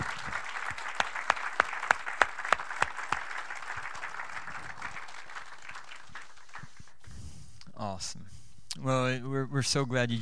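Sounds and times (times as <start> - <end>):
audience applause: 0.0 - 7.1
speech: 8.0 - 10.2.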